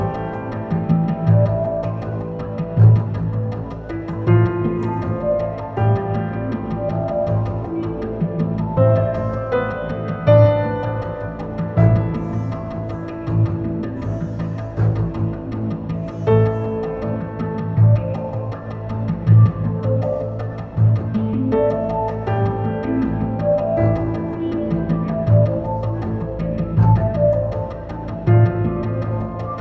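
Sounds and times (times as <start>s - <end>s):
music outdoors in a desert: 0.0s - 29.6s.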